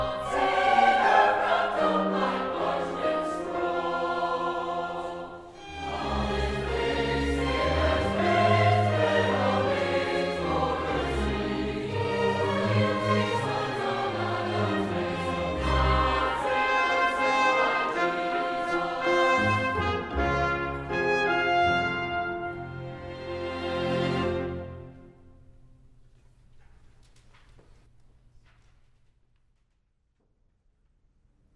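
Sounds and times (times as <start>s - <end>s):
concert choir singing: 0.0s - 25.2s.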